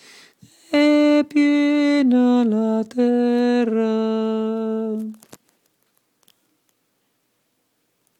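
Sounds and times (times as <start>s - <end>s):
contralto voices singing: 0.7s - 5.1s.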